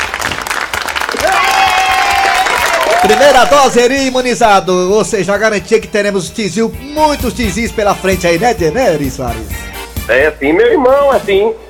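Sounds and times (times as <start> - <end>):
applause: 0.0 - 3.6
speech: 3.0 - 11.6.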